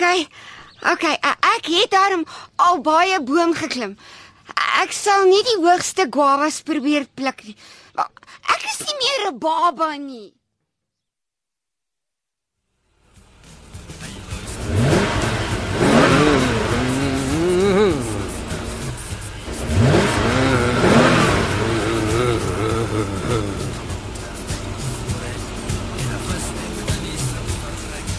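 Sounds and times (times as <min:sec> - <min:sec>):
speech: 0:00.0 - 0:10.4
car engine revving and idling: 0:12.9 - 0:28.1.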